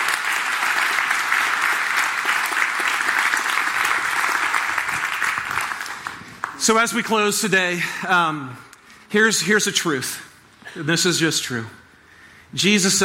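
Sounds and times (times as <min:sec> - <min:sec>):
audience applause: 0:00.0 - 0:06.7
speech: 0:06.6 - 0:11.8, 0:12.5 - 0:13.0.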